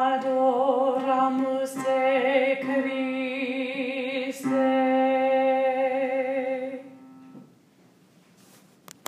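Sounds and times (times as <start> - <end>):
alto voice singing choir practice track: 0.0 - 7.4.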